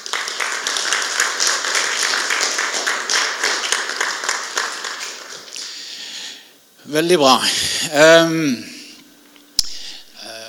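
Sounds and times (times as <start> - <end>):
applause from a group: 0.0 - 5.6
speech: 6.9 - 8.7.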